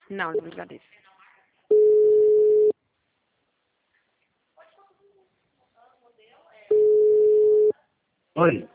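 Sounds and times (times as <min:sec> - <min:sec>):
speech: 0:00.1 - 0:01.1, 0:08.4 - 0:08.7
telephone busy tone after a dropped call: 0:01.7 - 0:02.7, 0:06.7 - 0:07.7.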